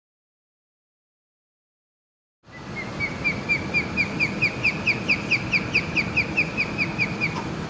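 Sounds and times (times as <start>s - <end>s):
osprey calling: 2.5s - 7.6s.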